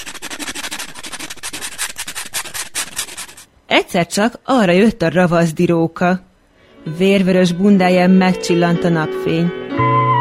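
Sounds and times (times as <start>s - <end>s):
nail file rasping over fingernails: 0.0s - 3.5s
speech: 3.7s - 10.1s.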